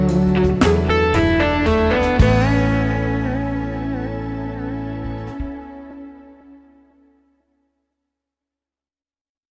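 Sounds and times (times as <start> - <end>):
overdrive guitar: 0.0 - 7.0.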